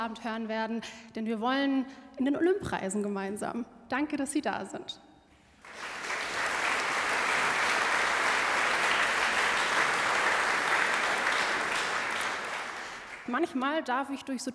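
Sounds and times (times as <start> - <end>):
speech: 0.0 - 5.0, 13.3 - 14.5
audience applause: 5.6 - 13.5.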